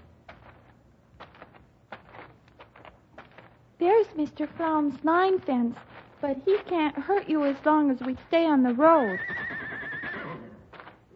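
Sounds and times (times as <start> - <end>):
speech: 3.8 - 9.4
horse neighing: 9.0 - 10.6.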